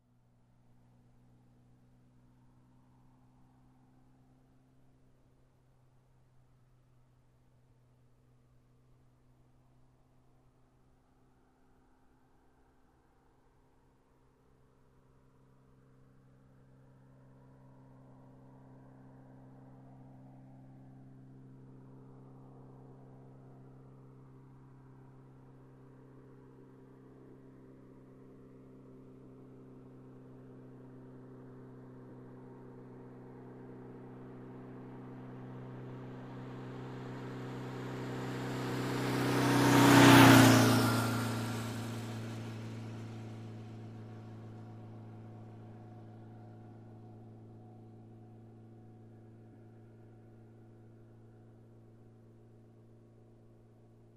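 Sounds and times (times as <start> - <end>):
motorcycle passing by: 33.6 - 47.1.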